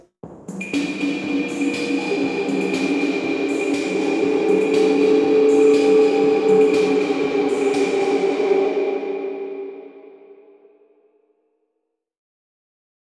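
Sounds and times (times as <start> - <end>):
reverb effect: 0.5 - 10.8.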